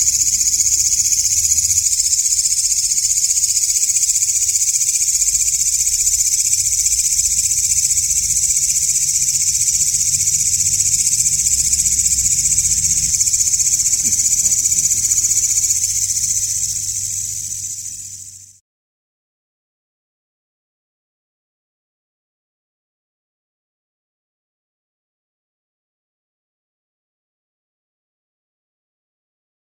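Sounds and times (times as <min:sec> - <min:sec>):
katydid buzzing call: 0:00.0 - 0:18.6.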